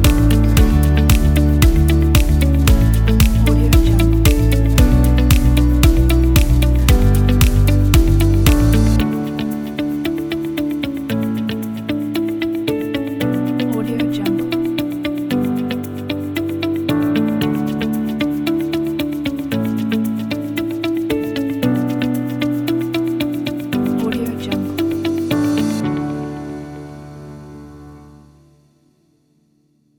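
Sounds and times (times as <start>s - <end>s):
inspirational upbeat corporate music: 0.0s - 27.0s.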